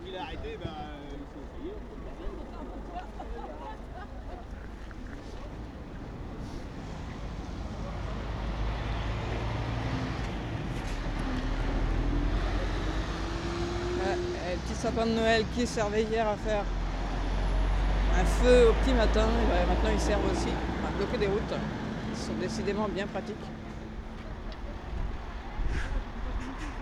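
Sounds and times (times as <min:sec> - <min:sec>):
car and truck engines at a road blockade in Sotteville-lès-Rouen, France: 0:00.0 - 0:26.8
laughter: 0:01.4 - 0:05.5, 0:24.5 - 0:26.8
speech: 0:14.8 - 0:16.8, 0:18.2 - 0:23.6
wind noise: 0:24.3 - 0:26.8.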